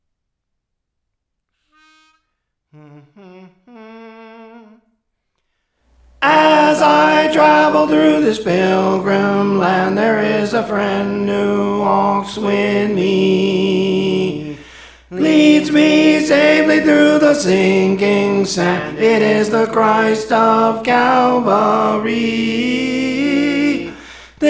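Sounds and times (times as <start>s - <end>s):
tenor singing: 6.0s - 24.4s.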